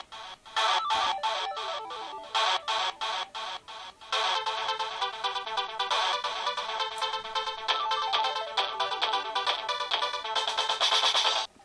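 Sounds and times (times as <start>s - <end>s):
Samsung SGH-E700 ringtone: 0.6s - 11.5s.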